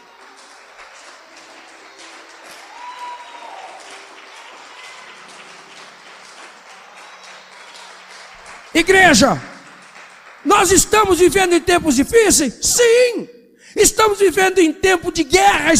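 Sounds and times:
audience applause: 0.0 - 11.6
speech: 8.8 - 9.5, 10.6 - 15.7.

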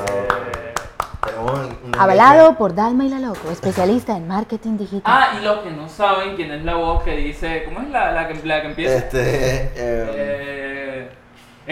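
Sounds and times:
hands clapping: 0.0 - 2.2
speech: 2.0 - 10.6
sustained tonal voice: 8.8 - 10.5.

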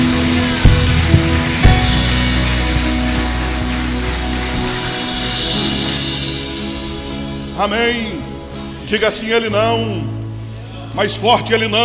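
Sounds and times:
audience applauding: 0.0 - 7.6
speech: 7.6 - 8.2, 8.9 - 10.2, 11.0 - 11.8.

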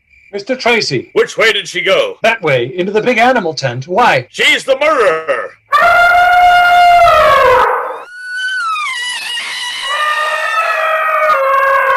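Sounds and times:
speech: 0.3 - 6.0
elephant trumpeting: 5.7 - 11.9.

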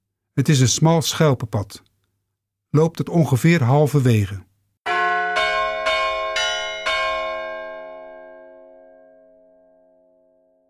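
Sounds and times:
speech: 0.4 - 1.9, 2.7 - 4.5
church bell ringing: 4.9 - 10.5.

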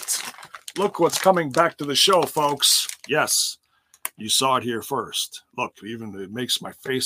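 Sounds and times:
crinkling plastic bag of 300 Dum-Dums lollipops: 0.0 - 3.4
speech: 0.8 - 3.6, 4.2 - 7.0.

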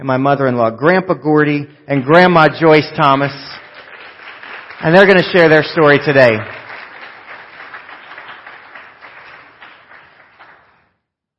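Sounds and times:
speech: 0.0 - 3.6, 4.8 - 6.6
audience clapping: 1.9 - 11.0.

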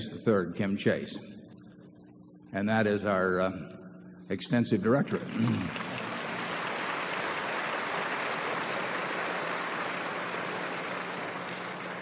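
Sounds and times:
speech: 0.0 - 1.4, 2.5 - 5.9
large crowd applauding: 5.3 - 12.0.

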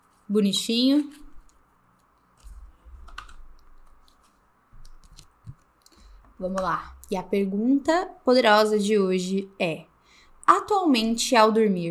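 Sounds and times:
speech: 0.3 - 1.2, 6.4 - 9.9, 10.5 - 11.8
playing cards being shuffled: 1.0 - 5.9.

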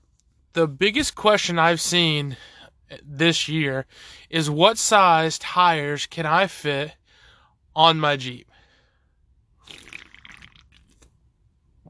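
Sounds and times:
speech: 0.5 - 7.0, 7.8 - 8.5
person taking a big sip of beer: 9.6 - 11.2.

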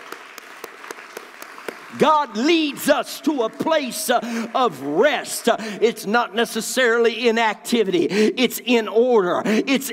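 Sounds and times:
audience hand clapping: 0.0 - 5.8
speech: 1.9 - 9.9.

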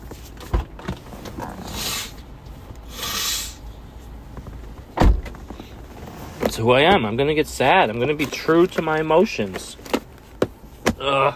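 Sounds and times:
nose blowing: 1.6 - 2.2, 2.9 - 3.6
speech: 6.6 - 9.8, 11.0 - 11.3.

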